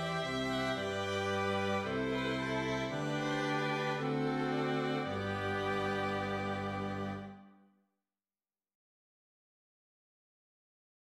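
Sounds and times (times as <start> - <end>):
strings: 0.0 - 7.5.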